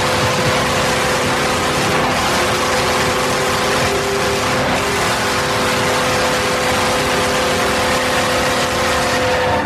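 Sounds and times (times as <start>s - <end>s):
subtle ambulance-like emergency signal: 0.0s - 9.6s
hockey arena goal horn: 3.0s - 9.6s.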